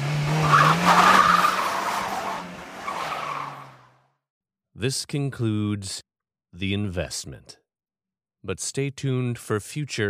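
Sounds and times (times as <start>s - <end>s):
car engine revving: 0.0s - 4.0s
tires squealing against the pavement: 0.0s - 4.0s
speech: 4.8s - 7.6s, 8.4s - 10.0s.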